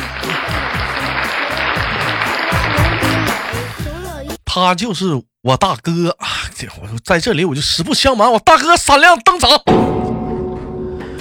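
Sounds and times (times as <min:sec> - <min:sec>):
applause: 0:00.0 - 0:03.9
speech: 0:04.6 - 0:10.0.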